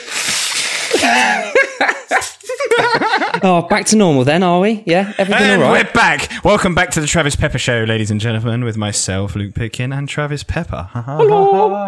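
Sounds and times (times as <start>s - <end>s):
person blowing their nose: 0.0s - 2.8s
laughter: 1.0s - 3.7s, 5.1s - 6.5s
speech: 3.4s - 11.8s.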